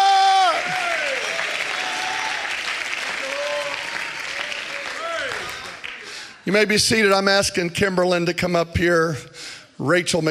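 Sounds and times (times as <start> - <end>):
audience clapping hands: 0.0 - 6.4
speech: 6.5 - 10.2.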